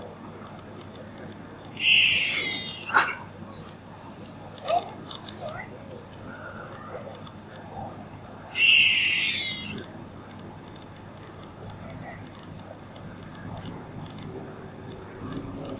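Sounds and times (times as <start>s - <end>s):
squirrel buzzing calls: 1.8s - 3.3s, 8.6s - 9.8s.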